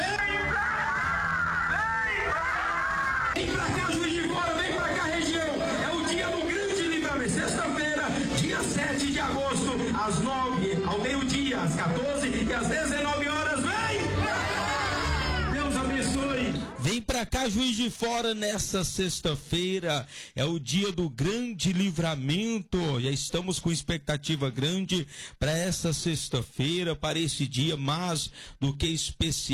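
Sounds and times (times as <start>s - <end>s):
shouts and laughter: 0.0s - 3.8s, 13.7s - 16.0s
dense crowd chatter: 2.2s - 16.8s
speech: 17.0s - 29.5s.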